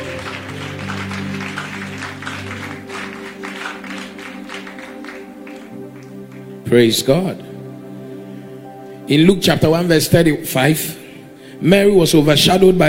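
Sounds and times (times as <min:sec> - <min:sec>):
audience clapping: 0:00.0 - 0:06.7
low sustained musical tones: 0:00.0 - 0:12.8
speech: 0:06.7 - 0:07.5, 0:09.1 - 0:11.0, 0:11.6 - 0:12.8.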